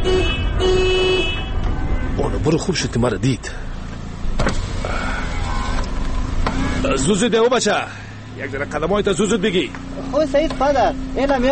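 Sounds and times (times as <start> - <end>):
car horn honking: 0.0 - 2.6, 5.1 - 7.3
low engine rumble: 1.6 - 11.5
speech: 2.5 - 3.7, 7.0 - 11.5.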